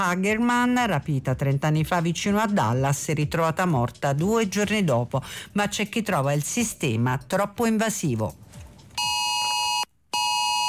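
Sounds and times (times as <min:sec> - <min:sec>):
speech: 0:00.0 - 0:08.4
Amber Alert emergency alert tone on smartphones and TV: 0:09.0 - 0:10.6.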